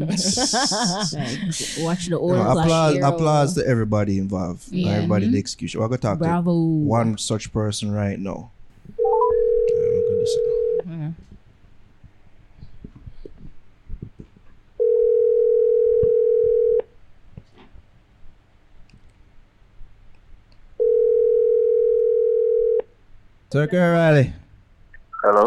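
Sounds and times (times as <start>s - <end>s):
laughter: 0.0s - 3.1s
speech: 0.0s - 8.6s, 23.5s - 24.4s, 25.2s - 25.4s
faint noise: 0.0s - 25.4s
WhatsApp call ringing tone: 9.0s - 10.8s, 14.8s - 16.8s, 20.8s - 22.8s.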